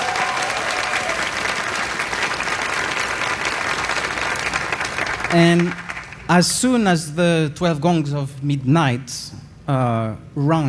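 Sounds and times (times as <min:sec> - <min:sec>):
audience applause and cheering: 0:00.0 - 0:06.3
speech: 0:05.3 - 0:10.6.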